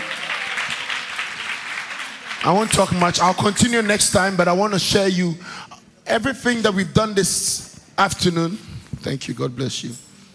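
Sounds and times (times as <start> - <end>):
audience clapping: 0.0 - 4.4
speech: 2.4 - 10.1.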